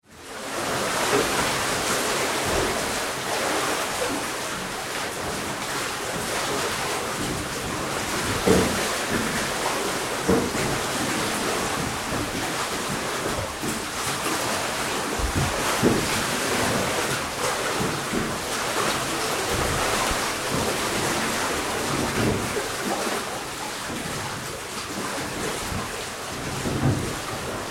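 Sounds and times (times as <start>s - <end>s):
sea moving around in a shipwreck hull: 0.0s - 27.7s.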